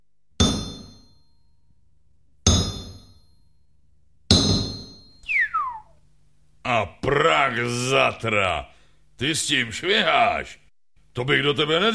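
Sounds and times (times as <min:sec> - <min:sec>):
heavy hammer clanging on metal: 0:00.4 - 0:01.2, 0:02.5 - 0:03.4, 0:04.3 - 0:05.2
high tone sweeping downward: 0:05.2 - 0:05.9
speech: 0:07.1 - 0:10.6, 0:11.2 - 0:11.9.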